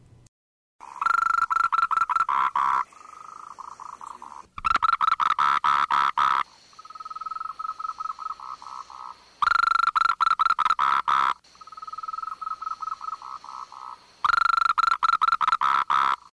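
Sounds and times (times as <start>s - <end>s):
Moltrecht's green treefrog calling: 0.8s - 16.3s.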